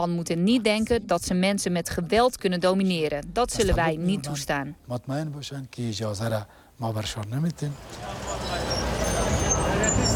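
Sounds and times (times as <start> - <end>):
speech: 0.0 - 8.3
cars coming and going on the busy streets of Bazarak, Panjshir, Afghanistan: 7.1 - 10.1.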